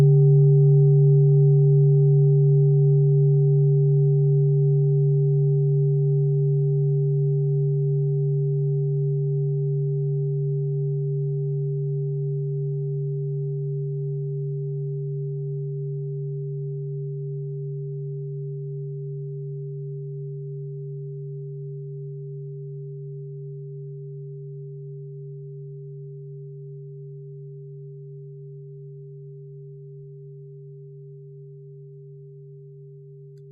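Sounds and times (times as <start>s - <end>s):
set of singing bowls: 0.0s - 19.5s.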